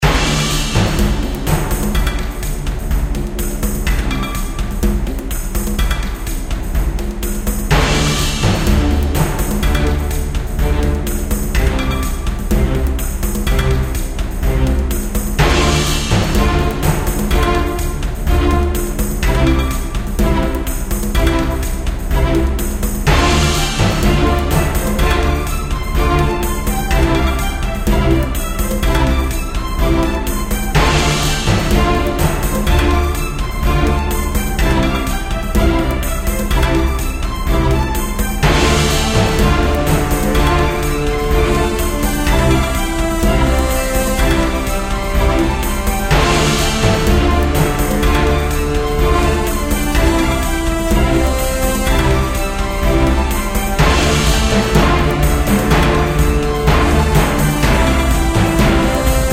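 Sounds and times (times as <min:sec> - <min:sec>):
percussion: 0:00.0 - 0:59.3.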